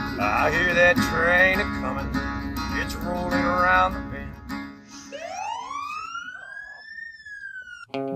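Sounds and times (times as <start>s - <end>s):
speech: 0.2s - 2.3s, 3.1s - 4.1s
police car siren wailing: 4.9s - 7.9s.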